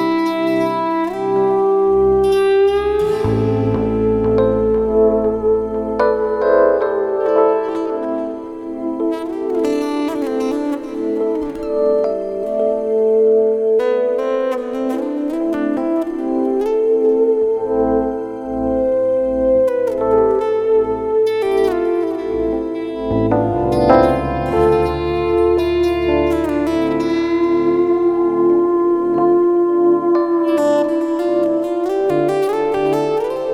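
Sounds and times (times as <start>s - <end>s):
isolated e-bow guitar: 0.0s - 33.5s.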